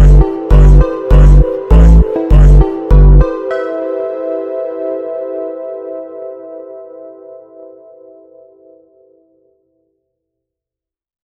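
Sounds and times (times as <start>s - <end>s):
slowed phonk montagem music: 0.0s - 7.7s.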